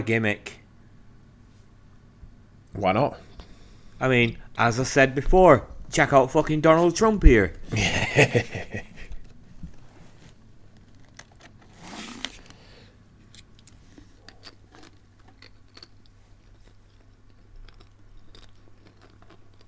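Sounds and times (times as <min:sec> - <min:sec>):
speech: 0:00.0 - 0:00.6, 0:02.8 - 0:03.3, 0:04.0 - 0:08.9
laughter: 0:07.7 - 0:09.2
person munching Pringles crisps: 0:10.9 - 0:19.6.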